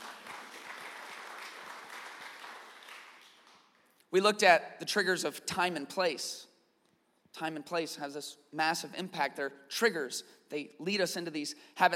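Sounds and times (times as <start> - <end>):
audience applause: 0.0 - 3.6
speech: 4.1 - 6.5, 7.4 - 11.9.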